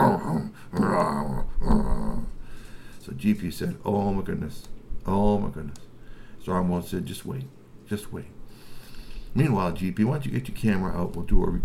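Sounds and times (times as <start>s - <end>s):
werewolf growl sound effect: 0.0s - 2.4s
speech: 0.7s - 2.0s, 3.1s - 8.4s, 9.3s - 11.6s.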